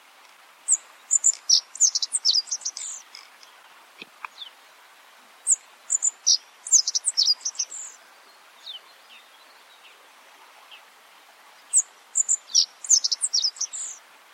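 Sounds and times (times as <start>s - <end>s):
Godlewski's bunting calls: 0.7s - 4.6s, 5.4s - 8.8s, 11.7s - 14.0s.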